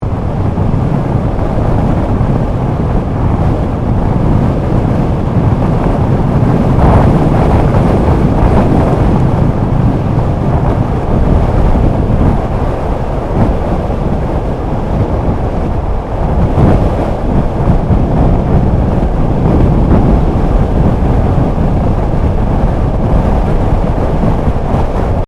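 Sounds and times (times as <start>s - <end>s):
air rush from car movement: 0.0s - 25.2s.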